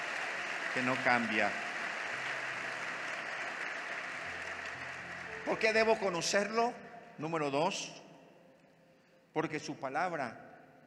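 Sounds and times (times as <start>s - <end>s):
audience applause: 0.0s - 6.4s
speech: 0.7s - 1.7s, 5.5s - 8.0s, 9.3s - 10.4s.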